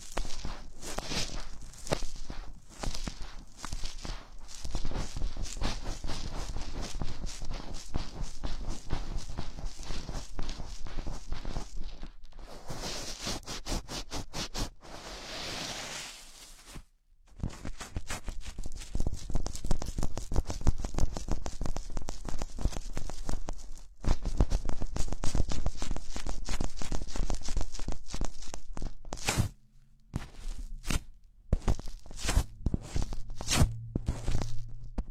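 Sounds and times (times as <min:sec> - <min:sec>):
several pairs of gloves rustling and crackling: 0:00.0 - 0:35.0
low hum: 0:29.6 - 0:35.0.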